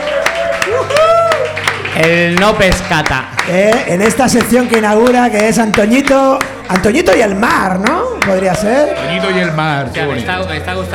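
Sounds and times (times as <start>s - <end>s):
applause: 0.0s - 8.5s
speech: 2.0s - 10.9s.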